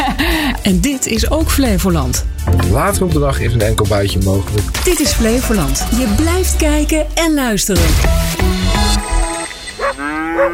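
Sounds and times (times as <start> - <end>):
speech: 0.6 - 9.0, 9.9 - 10.5
cattle mooing on a farm: 9.8 - 10.5.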